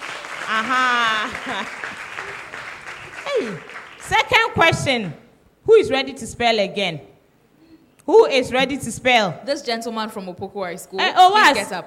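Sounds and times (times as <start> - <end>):
audience clapping: 0.0 - 5.2
speech: 0.5 - 2.4, 3.2 - 7.1, 8.1 - 11.8.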